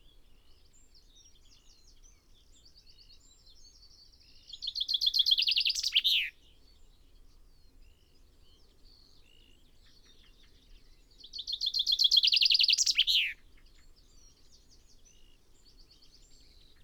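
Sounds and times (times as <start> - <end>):
quiet bird calls: 0.0 - 16.8
common chaffinch singing: 4.5 - 6.3, 11.2 - 13.4.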